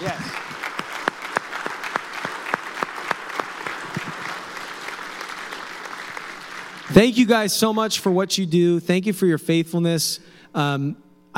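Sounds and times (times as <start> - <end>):
audience applauding: 0.0 - 7.3
speech: 6.9 - 11.3.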